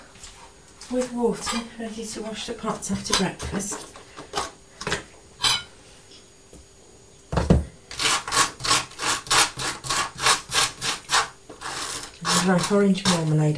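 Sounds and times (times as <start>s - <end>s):
speech: 0.9s - 4.0s, 12.5s - 13.5s
crunchy toast being scraped: 7.9s - 13.4s.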